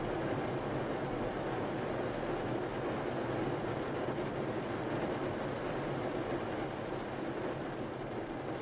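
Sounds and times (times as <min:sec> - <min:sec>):
rain falling: 0:00.0 - 0:08.5.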